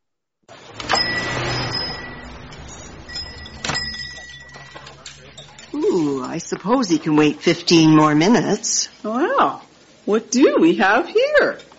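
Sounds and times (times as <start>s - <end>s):
door opening: 0.5s - 5.8s
speech: 6.0s - 11.7s.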